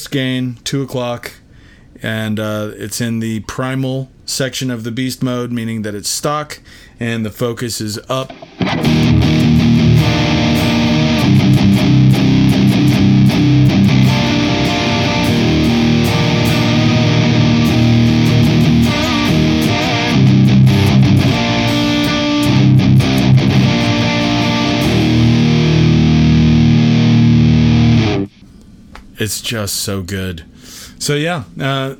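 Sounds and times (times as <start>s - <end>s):
speech: 0.0s - 1.4s, 2.0s - 9.1s, 29.2s - 31.9s
electric guitar through fuzz distortion pedal: 8.2s - 28.4s.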